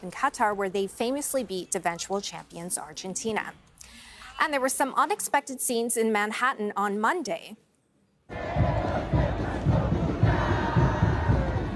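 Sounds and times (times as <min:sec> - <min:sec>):
speech: 0:00.0 - 0:07.6
sports fans cheering in a crowd: 0:08.3 - 0:11.7.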